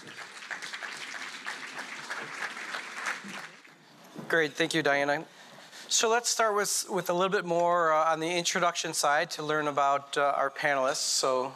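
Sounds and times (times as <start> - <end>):
audience applause: 0.0 - 3.8
speech: 4.3 - 11.5.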